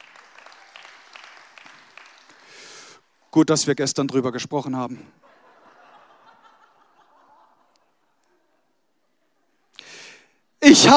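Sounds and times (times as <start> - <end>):
audience applause: 0.0 - 3.0
speech: 3.3 - 5.3
laughter: 5.2 - 9.7.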